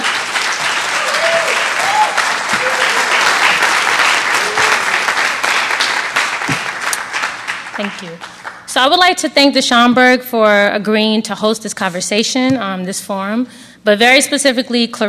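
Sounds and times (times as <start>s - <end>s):
audience applause: 0.0s - 8.7s
speech: 7.8s - 15.0s.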